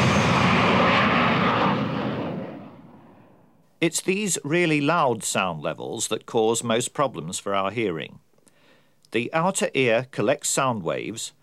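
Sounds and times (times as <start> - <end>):
jet aircraft taking off: 0.0 - 3.6
speech: 3.8 - 8.2, 9.1 - 11.4.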